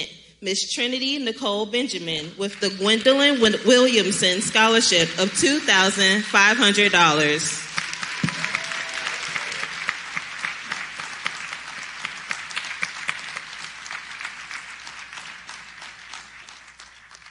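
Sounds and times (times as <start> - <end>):
speech: 0.0 - 7.6
audience applause: 7.7 - 17.2.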